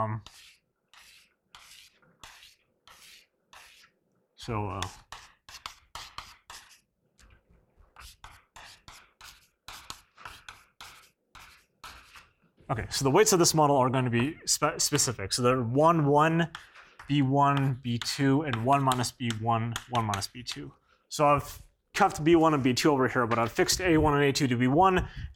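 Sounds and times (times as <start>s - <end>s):
speech: 0.0s - 0.5s, 4.4s - 5.0s, 12.7s - 25.3s
marker or chalk strokes on a board during a mathematics lecture: 0.0s - 12.5s, 13.2s - 20.8s.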